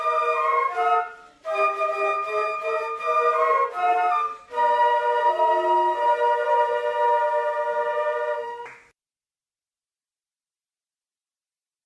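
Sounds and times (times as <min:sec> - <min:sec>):
flute orchestra playing: 0:00.0 - 0:08.7.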